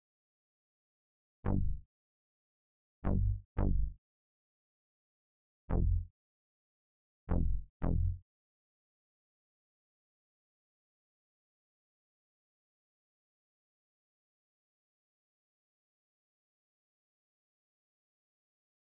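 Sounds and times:
bass: 1.4s - 1.9s, 3.0s - 4.0s, 5.7s - 6.1s, 7.3s - 8.2s.

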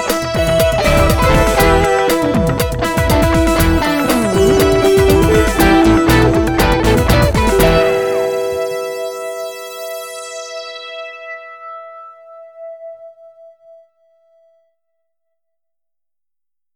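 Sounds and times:
funky music: 0.0s - 9.9s.

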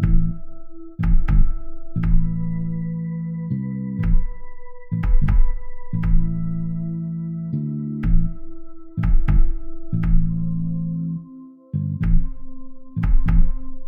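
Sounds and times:
blues groove music: 0.0s - 13.8s.

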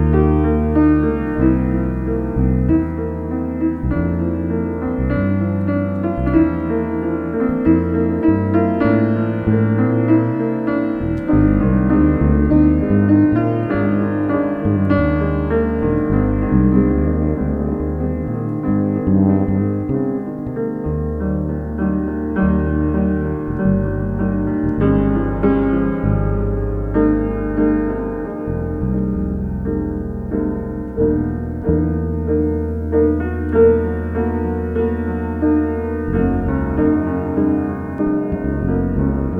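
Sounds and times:
bass in a duet: 0.0s - 39.3s
piano in a duet: 0.0s - 39.3s.

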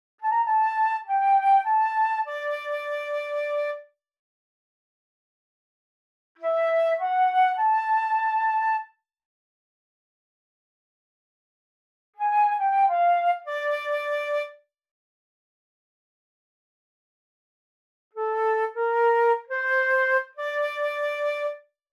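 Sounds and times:
flute: 0.2s - 3.9s, 6.4s - 8.9s, 12.2s - 14.6s, 18.2s - 21.6s.

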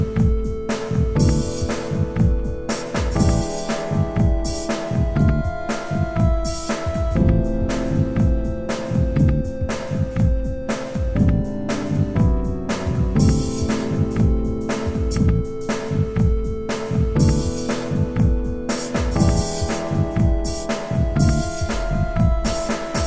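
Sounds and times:
soft synth groove in Am at 120: 0.0s - 23.0s.

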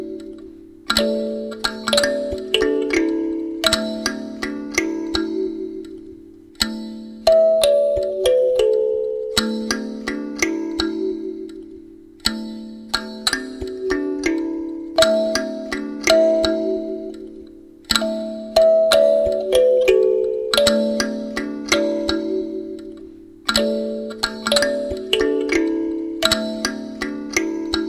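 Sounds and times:
kalimba playing wellness music: 0.0s - 27.8s.

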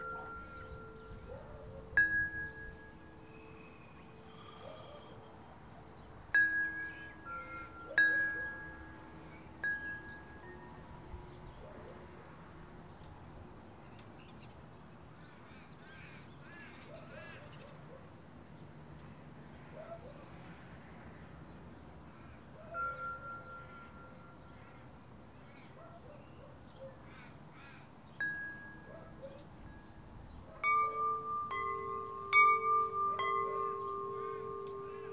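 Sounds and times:
wind chimes: 0.0s - 11.4s, 22.7s - 24.5s, 28.2s - 35.1s
local traffic: 0.0s - 35.1s
dog barking: 0.1s - 0.5s, 1.2s - 2.0s, 19.8s - 20.2s, 25.8s - 27.0s, 28.8s - 29.4s
crows cawing: 27.1s - 27.9s.

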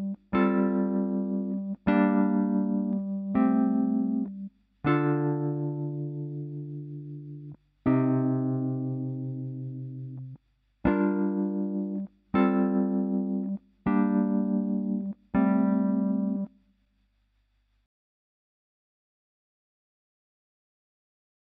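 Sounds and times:
chords: 0.0s - 16.5s.

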